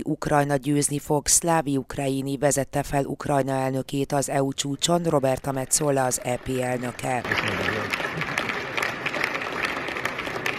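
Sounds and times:
speech: 0.0 - 8.0
loud applause for Volodymyr Zelensky: 6.4 - 10.5.

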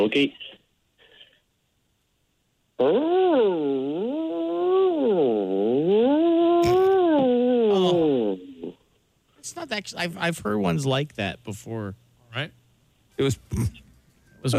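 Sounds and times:
speech: 0.0 - 0.5, 2.8 - 4.0, 9.5 - 12.6, 13.2 - 13.8
person imitating a whale call: 2.8 - 8.8.

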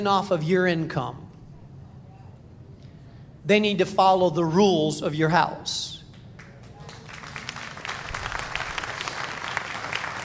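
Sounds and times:
speech: 0.0 - 1.2, 3.4 - 6.0
parents clapping: 6.1 - 10.2.

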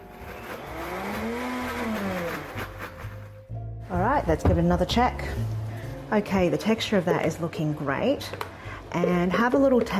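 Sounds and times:
blender blitzing pasta sauce: 0.0 - 3.4
speech: 4.2 - 9.9.

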